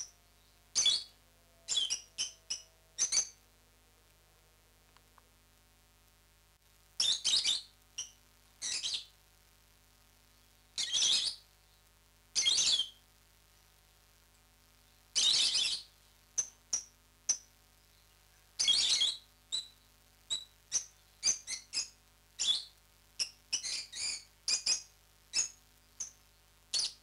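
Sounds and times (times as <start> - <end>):
lovebird chirps, parrots Agapornis: 0.0 - 3.4, 7.0 - 9.1, 10.8 - 11.4, 12.4 - 13.0, 15.2 - 27.0.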